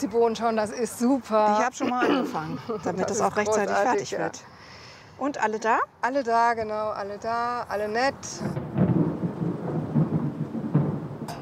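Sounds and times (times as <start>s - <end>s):
speech: 0.0s - 4.5s, 5.2s - 8.7s
rumbling thunder: 8.3s - 11.3s.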